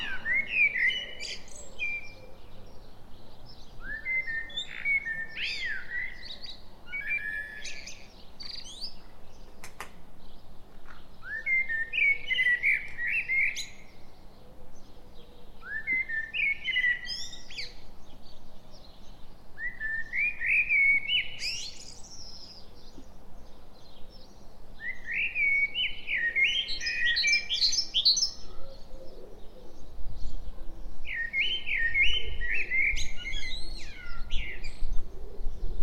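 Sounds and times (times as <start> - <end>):
common blackbird song: 0.0 - 35.8
sharp clicks from another bird: 9.6 - 10.0.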